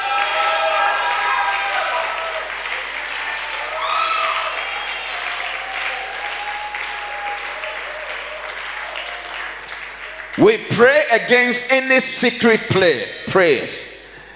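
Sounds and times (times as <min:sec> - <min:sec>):
audience clapping: 0:00.0 - 0:11.5
speech: 0:10.4 - 0:13.9.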